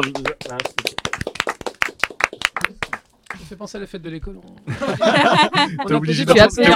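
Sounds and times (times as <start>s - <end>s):
speech: 0.0s - 1.1s, 3.5s - 6.7s
hand clapping: 0.0s - 3.5s
laughter: 4.6s - 6.7s.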